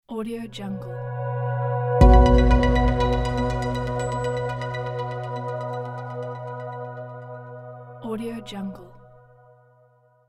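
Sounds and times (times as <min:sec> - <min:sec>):
catchy logo jingle: 0:02.0 - 0:07.9.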